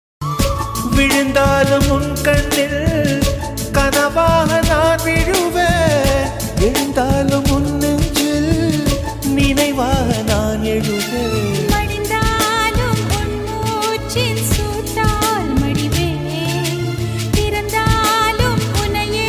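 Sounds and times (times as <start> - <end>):
Tamil love song melody: 0.2 - 19.2.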